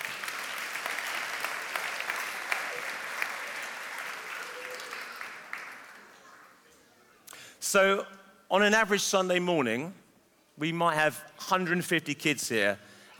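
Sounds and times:
ripple of applause from a group: 0.0 - 6.2
speech: 7.7 - 10.0, 10.6 - 13.1.

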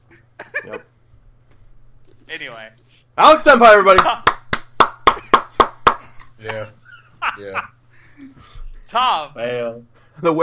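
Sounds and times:
speech: 0.7 - 0.9, 2.3 - 4.3, 6.4 - 6.8, 7.4 - 10.4
loud hand clapping: 3.9 - 6.1.

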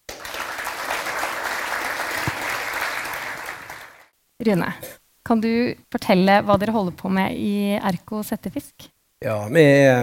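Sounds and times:
audience applause: 0.0 - 4.1
speech: 4.4 - 10.0.

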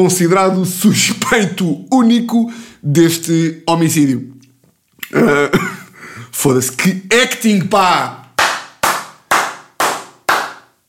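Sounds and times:
speech: 0.0 - 4.4, 5.1 - 5.8, 6.4 - 8.2
slow hand claps: 8.2 - 10.8.

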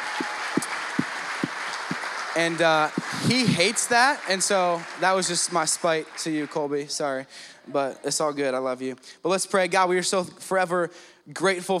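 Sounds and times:
louder claps or thumps: 0.0 - 6.9
crowd applause: 0.0 - 8.6
speech: 2.4 - 11.7.

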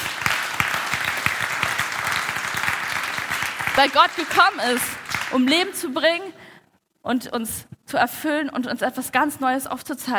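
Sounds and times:
audience clapping: 0.0 - 5.8
speech: 3.8 - 6.4, 7.0 - 10.1.

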